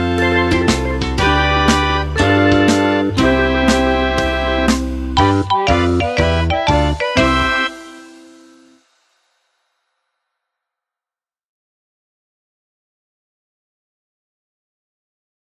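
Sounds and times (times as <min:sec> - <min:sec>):
person singing: 0:00.0 - 0:04.6, 0:05.2 - 0:08.8.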